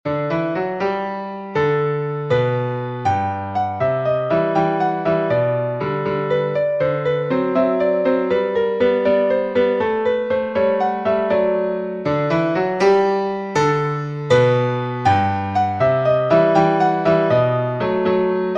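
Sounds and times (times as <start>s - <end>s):
piano: 0.0s - 18.5s.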